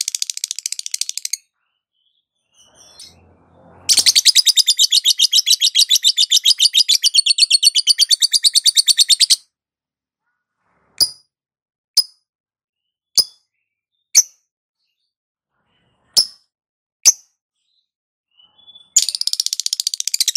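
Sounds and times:
lovebird calling: 3.9s - 9.4s.

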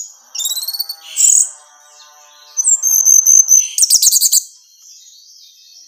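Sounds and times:
orange-headed thrush whistled song: 0.0s - 4.5s.

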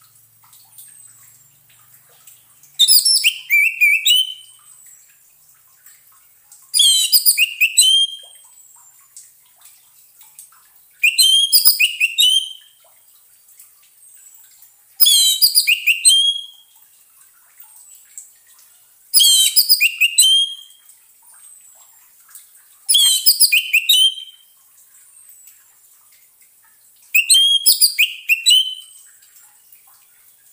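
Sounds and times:
orange-headed thrush song: 2.8s - 4.6s, 6.8s - 8.4s, 11.0s - 12.7s, 15.0s - 16.7s, 19.2s - 20.8s, 22.9s - 24.4s, 27.1s - 29.0s.

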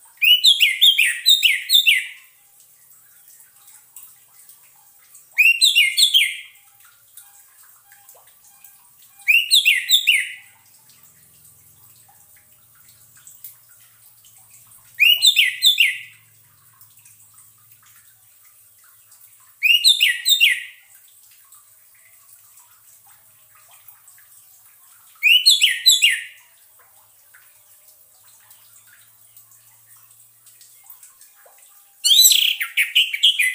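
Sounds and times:
Orange-headed thrush whistling song: 0.2s - 2.3s, 5.4s - 6.6s, 7.2s - 10.5s, 15.0s - 16.2s, 19.6s - 20.8s, 25.2s - 26.4s, 32.0s - 33.5s.

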